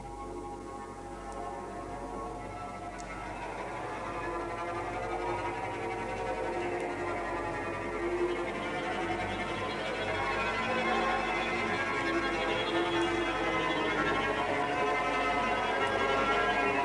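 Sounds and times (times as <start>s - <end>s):
string quartet: 0.0s - 16.8s.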